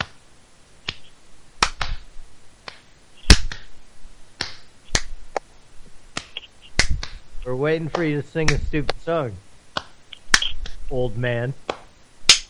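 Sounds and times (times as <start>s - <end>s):
hands clapping: 0.9s - 2.0s, 2.6s - 3.7s, 4.4s - 5.1s, 6.2s - 7.2s, 7.8s - 9.0s, 9.8s - 10.8s, 11.7s - 12.4s
speech: 7.5s - 9.5s, 10.9s - 11.6s.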